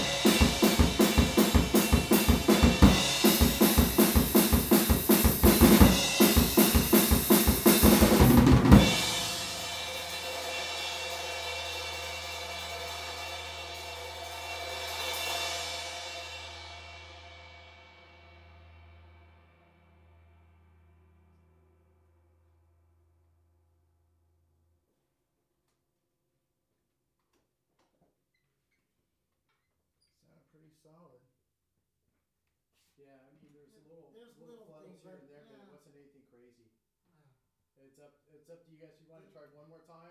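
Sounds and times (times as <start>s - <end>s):
drums recorded with an omnidirectional PZM microphone: 0.0s - 20.6s.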